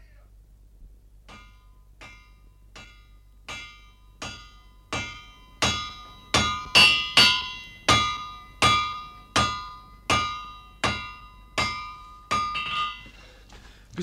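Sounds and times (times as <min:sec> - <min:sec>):
blacksmith hammering on an anvil: 0:01.2 - 0:13.2.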